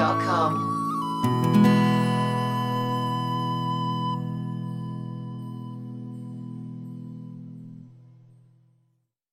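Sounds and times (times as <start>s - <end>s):
penny whistle: 0.2s - 5.8s.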